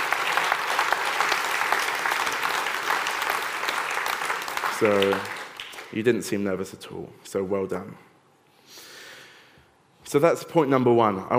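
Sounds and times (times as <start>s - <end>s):
audience applause: 0.0s - 5.9s
speech: 4.8s - 8.1s, 10.1s - 11.3s.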